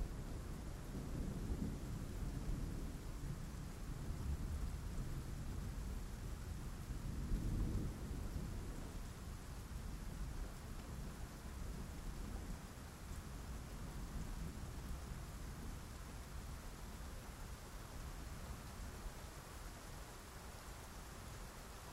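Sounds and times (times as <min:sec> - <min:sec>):
soothing rain: 0:00.0 - 0:21.9.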